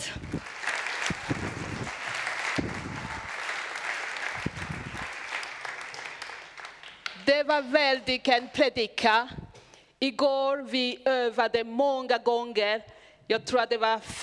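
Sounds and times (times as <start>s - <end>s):
applause for the children: 0.0s - 7.3s
speech: 7.4s - 9.4s, 10.0s - 14.2s.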